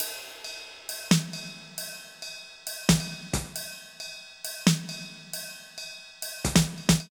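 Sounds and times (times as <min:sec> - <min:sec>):
snare drums: 0:00.0 - 0:01.9, 0:02.8 - 0:04.0, 0:04.6 - 0:05.5, 0:06.3 - 0:07.0
ride cymbal beat: 0:00.0 - 0:07.0.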